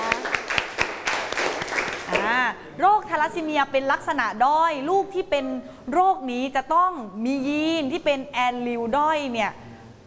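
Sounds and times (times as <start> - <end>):
classroom applause for a student group: 0.0 - 2.4
speech: 2.8 - 9.6.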